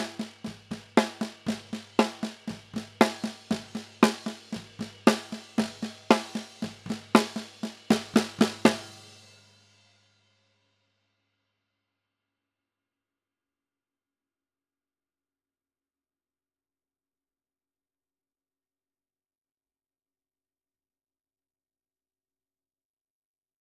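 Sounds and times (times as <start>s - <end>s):
snare drum bottom: 0.0s - 9.3s.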